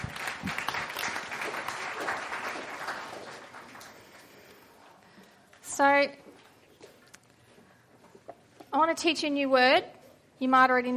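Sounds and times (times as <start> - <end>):
audience clapping: 0.0 - 4.7
speech: 5.8 - 6.2, 8.7 - 10.9.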